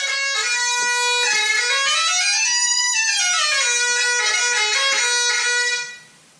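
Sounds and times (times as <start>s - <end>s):
bagpipe chanter melody without drones: 0.0s - 6.2s.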